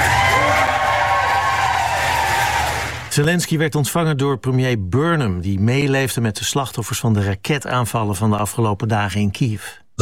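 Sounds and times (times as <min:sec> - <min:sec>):
crowd cheering: 0:00.0 - 0:03.1
speech: 0:03.2 - 0:09.9.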